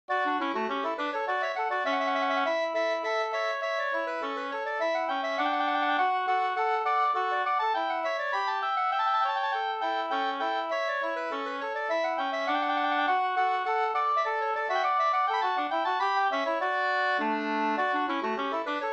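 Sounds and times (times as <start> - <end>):
two-part slangpolska: 0.1 - 18.9.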